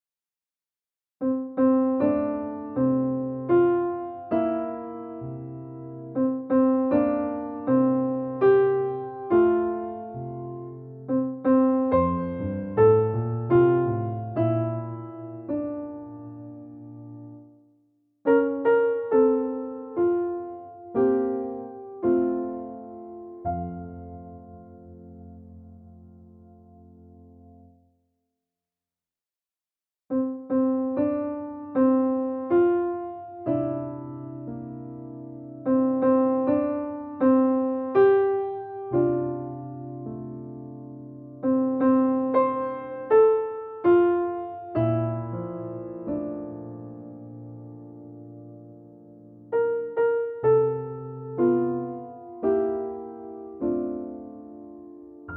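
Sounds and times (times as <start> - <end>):
birthday song on piano: 1.2 - 27.9, 30.1 - 55.3.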